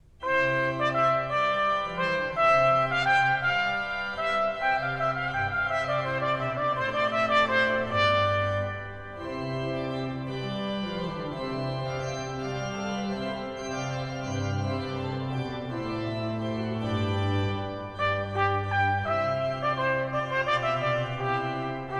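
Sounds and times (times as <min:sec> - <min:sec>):
organ in a warlike consort: 0:00.2 - 0:21.9
trumpet in a warlike consort: 0:00.2 - 0:21.9.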